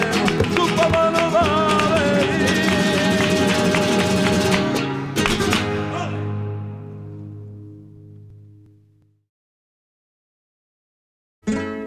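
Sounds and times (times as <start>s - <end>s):
rumba on flamenco guitars: 0.0s - 9.0s, 11.4s - 11.8s.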